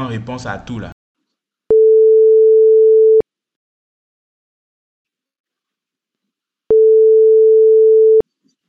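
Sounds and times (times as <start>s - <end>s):
speech: 0.0s - 0.9s
telephone ringback tone while a call is being placed: 1.7s - 3.2s, 6.7s - 8.2s.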